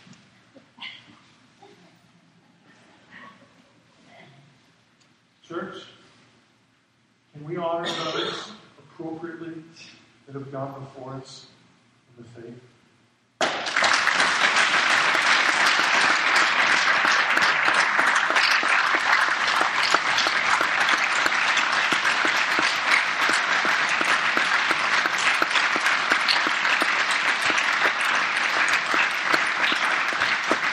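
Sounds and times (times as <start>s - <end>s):
speech: 5.5s - 5.9s, 9.2s - 11.6s, 12.2s - 12.8s
audience applause: 13.4s - 30.7s.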